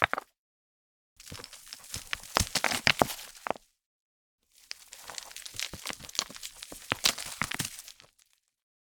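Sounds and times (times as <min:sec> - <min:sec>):
stones rolling down a small steep rocky slope: 0:00.0 - 0:00.3, 0:01.2 - 0:03.7, 0:04.6 - 0:08.3.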